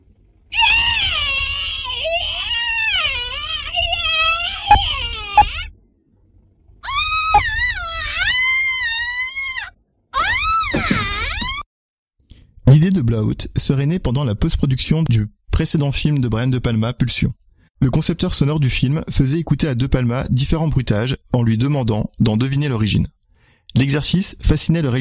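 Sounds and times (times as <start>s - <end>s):
person screaming for a film scene: 0.5s - 5.7s, 6.8s - 11.2s
speech: 12.8s - 24.9s.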